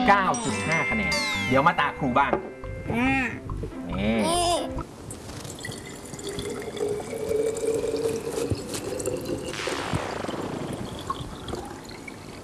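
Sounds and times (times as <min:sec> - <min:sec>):
speech: 0:00.1 - 0:04.8
water pouring into a bottle: 0:05.1 - 0:12.4.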